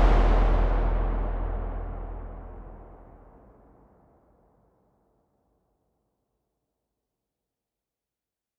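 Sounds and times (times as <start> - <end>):
drum: 0.0 - 3.1.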